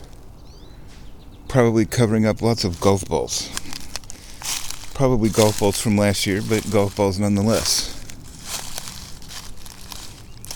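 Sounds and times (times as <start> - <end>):
speech: 1.5 - 3.6, 5.0 - 7.9
footsteps on leaf-covered ground: 2.4 - 10.5.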